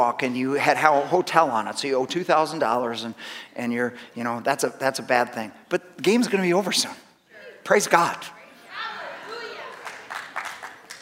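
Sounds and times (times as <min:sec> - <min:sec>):
speech: 0:00.0 - 0:07.0, 0:07.6 - 0:08.4
audience clapping: 0:09.6 - 0:10.9.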